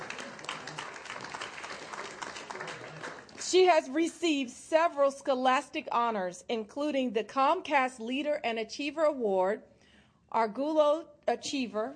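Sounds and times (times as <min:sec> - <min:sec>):
audience clapping: 0:00.0 - 0:03.7
speech: 0:03.5 - 0:09.7, 0:10.3 - 0:11.9.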